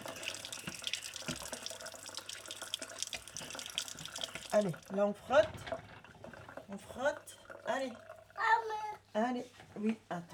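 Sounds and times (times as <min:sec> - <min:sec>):
running tap water wetting hands: 0:00.0 - 0:08.3
speech: 0:04.6 - 0:05.8, 0:06.7 - 0:08.5, 0:09.2 - 0:10.3.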